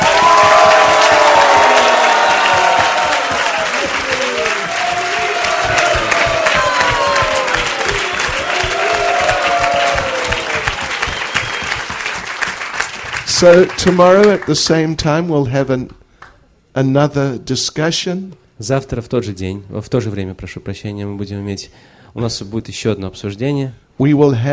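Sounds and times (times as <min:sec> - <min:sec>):
crowd cheering: 0:00.0 - 0:14.2
stormy audience ovation clapping: 0:00.0 - 0:14.6
whistles: 0:10.0 - 0:12.2
speech: 0:13.4 - 0:16.0, 0:16.8 - 0:24.5.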